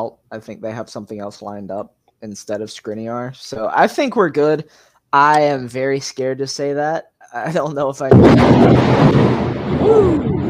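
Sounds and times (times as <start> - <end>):
speech: 0.0 - 10.4
thunder: 8.1 - 10.4.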